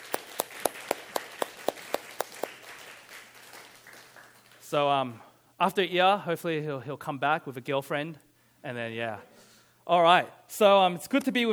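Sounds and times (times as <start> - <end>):
round of applause: 0.0 - 4.7
speech: 4.7 - 9.3, 9.9 - 11.5.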